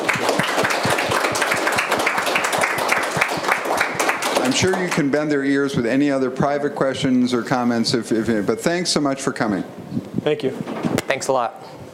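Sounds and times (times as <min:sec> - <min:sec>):
audience round of applause: 0:00.0 - 0:05.2
speech: 0:04.6 - 0:09.7, 0:10.3 - 0:11.8.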